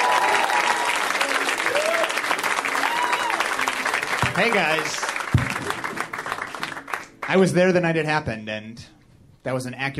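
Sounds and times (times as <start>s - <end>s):
audience applause: 0.0s - 7.4s
speech: 4.4s - 5.1s, 7.3s - 9.9s.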